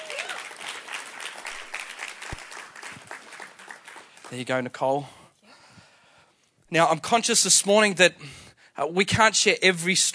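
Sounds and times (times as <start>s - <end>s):
audience applause: 0.0s - 4.5s
speech: 4.3s - 5.2s, 6.7s - 10.1s.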